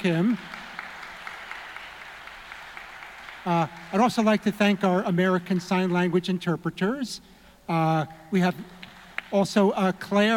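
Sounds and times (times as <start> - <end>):
speech: 0.0 - 0.6, 3.4 - 10.3
audience applause: 0.0 - 5.4.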